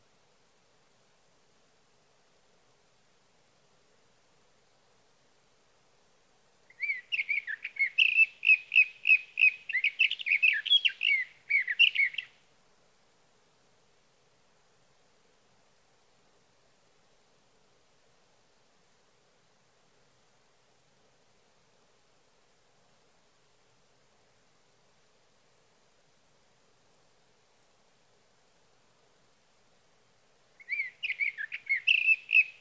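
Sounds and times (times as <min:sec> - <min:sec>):
sage thrasher: 0:06.8 - 0:12.3, 0:30.6 - 0:32.6.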